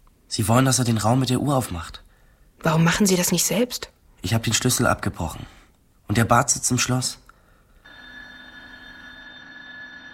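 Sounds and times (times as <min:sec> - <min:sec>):
speech: 0:00.3 - 0:02.0, 0:02.6 - 0:07.2
electric bell ringing: 0:07.8 - 0:10.1.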